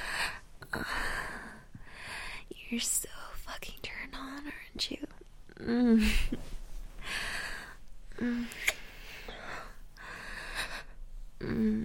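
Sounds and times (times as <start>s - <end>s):
person breathing hard: 0.0s - 2.5s, 7.0s - 11.1s
speech: 2.7s - 6.5s, 8.2s - 8.7s.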